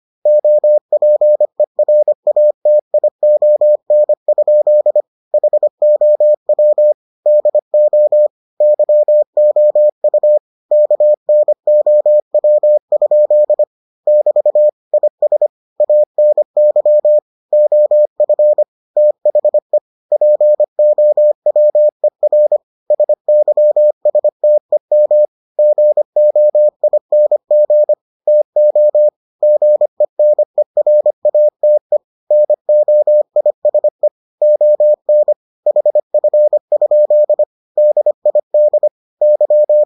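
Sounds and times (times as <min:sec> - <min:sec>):
morse code beeps: 0:00.3 - 0:39.8.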